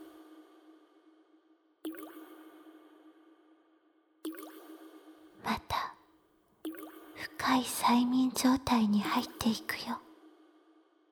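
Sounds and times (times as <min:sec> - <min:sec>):
clear water drips plinking: 0:01.9 - 0:02.4, 0:04.3 - 0:04.8, 0:06.6 - 0:09.4
speech: 0:07.4 - 0:10.0.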